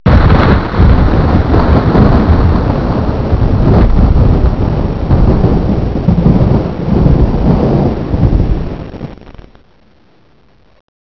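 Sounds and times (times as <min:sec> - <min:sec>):
thunder: 0:00.1 - 0:09.5.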